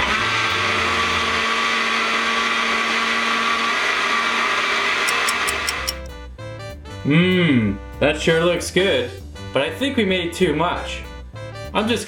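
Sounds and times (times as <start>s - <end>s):
Blendex 3000 blender blending hot dogs: 0.0s - 6.0s
speech: 7.1s - 11.1s, 11.8s - 12.0s.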